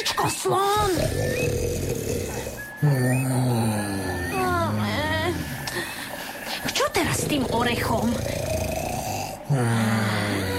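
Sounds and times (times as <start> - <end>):
speech: 0.0 - 2.0, 7.3 - 8.8, 9.5 - 10.5
steady hum: 0.0 - 10.5
loud snoring: 0.8 - 5.8, 6.8 - 10.5
wavering whistle-like sound: 0.9 - 6.7.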